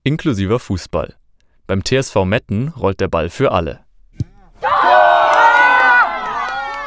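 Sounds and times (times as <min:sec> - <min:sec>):
speech: 0:00.1 - 0:03.8
group cheering at football training after a goal: 0:04.4 - 0:06.8.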